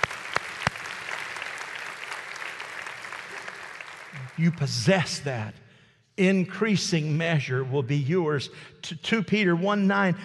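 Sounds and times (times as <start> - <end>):
audience clapping: 0.0 - 5.3
speech: 4.2 - 5.6, 6.2 - 10.2.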